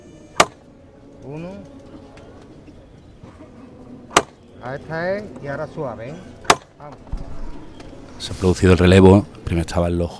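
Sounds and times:
hammer knock signalling procession float lift: 0:00.4 - 0:00.6
speech: 0:01.2 - 0:02.1, 0:04.6 - 0:07.2, 0:08.2 - 0:10.1.

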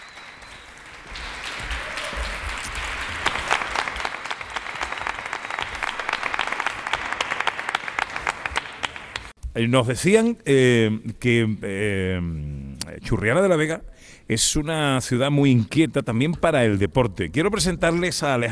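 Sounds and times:
audience applause: 0:00.0 - 0:09.3
speech: 0:09.6 - 0:18.5.

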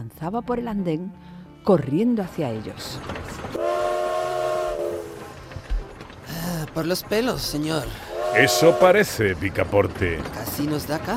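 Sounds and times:
speech: 0:00.1 - 0:03.2, 0:06.6 - 0:11.1
train whistle multi-tone blast: 0:03.6 - 0:05.4, 0:08.0 - 0:09.0.

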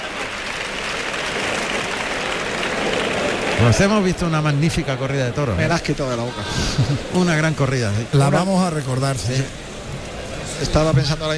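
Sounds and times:
bullring crowd clapping in an ovation to bullfighter Roca Rey: 0:00.0 - 0:05.2
bullring crowd roar: 0:00.0 - 0:07.5
speech: 0:03.6 - 0:09.6, 0:10.6 - 0:11.3
laughter: 0:06.3 - 0:07.6.

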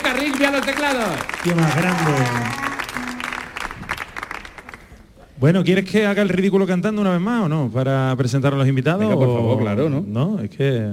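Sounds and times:
audience applause: 0:00.0 - 0:05.2
speech: 0:00.4 - 0:02.7, 0:05.4 - 0:10.9.

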